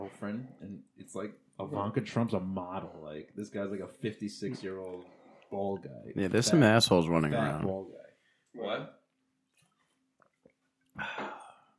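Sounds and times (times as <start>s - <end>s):
speech: 0.1s - 8.0s, 8.6s - 9.0s
people sipping drinks together: 4.7s - 5.9s, 9.6s - 11.7s.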